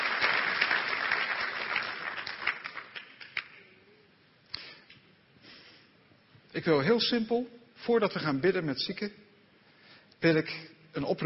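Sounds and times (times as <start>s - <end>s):
audience applause: 0.0s - 3.6s
speech: 6.6s - 9.2s, 10.2s - 11.2s.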